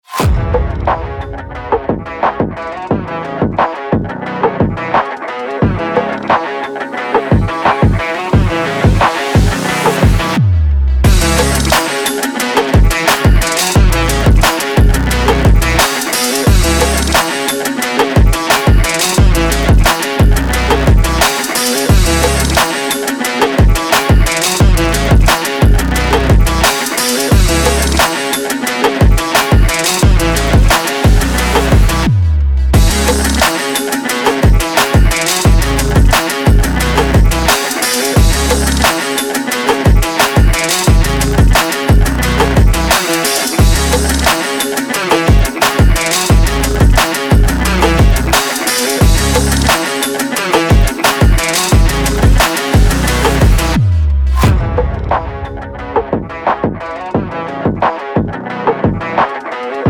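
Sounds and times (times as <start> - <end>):
stock music: 0.1 - 59.8.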